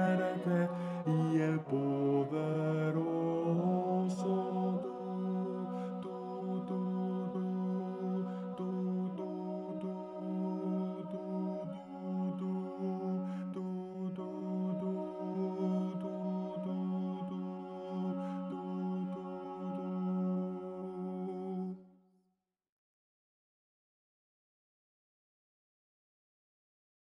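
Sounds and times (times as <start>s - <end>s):
tenors and basses singing choral music: 0.0s - 21.6s.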